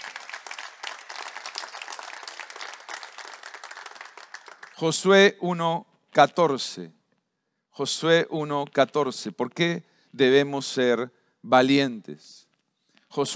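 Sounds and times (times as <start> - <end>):
audience applauding: 0.0 - 4.9
speech: 4.8 - 7.0, 7.8 - 12.4, 13.1 - 13.3.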